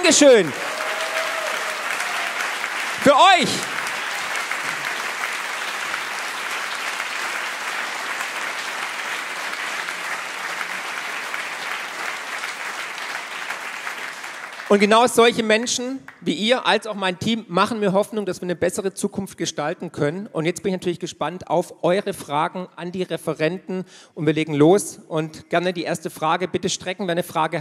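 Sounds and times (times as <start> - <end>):
audience applause: 0.0 - 16.3
speech: 0.1 - 0.8, 3.0 - 3.8, 14.7 - 27.5.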